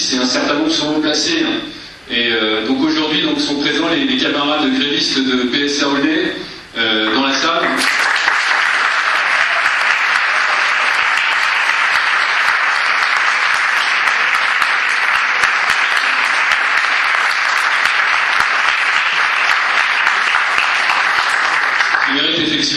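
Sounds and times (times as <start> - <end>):
speech: 0.1 - 7.7
crowd applause: 7.6 - 22.6.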